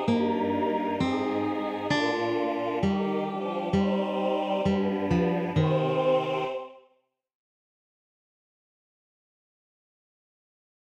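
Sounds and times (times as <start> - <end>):
tenor singing a psalm: 0.0 - 6.8.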